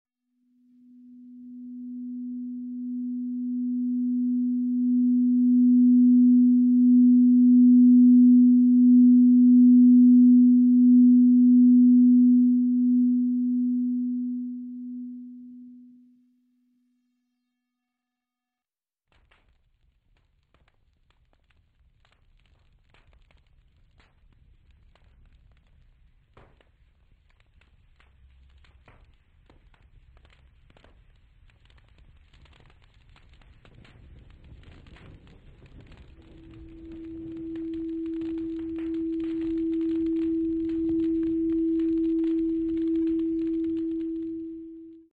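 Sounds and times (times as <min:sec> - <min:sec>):
sine wave tone: 0:00.3 - 0:18.7, 0:34.6 - 0:45.1.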